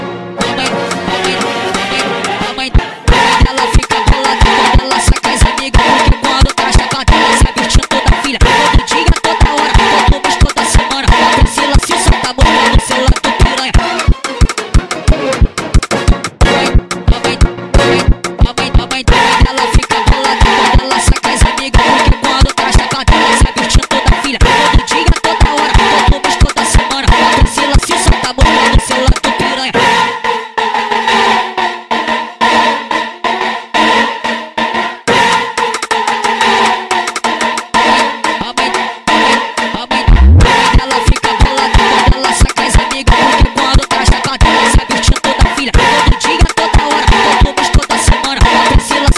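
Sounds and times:
sped up funk music: 0.4 - 49.1.

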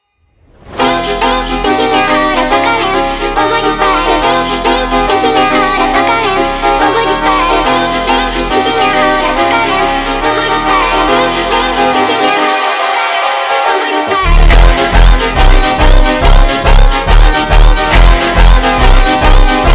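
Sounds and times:
sped up funk music: 0.8 - 19.7.

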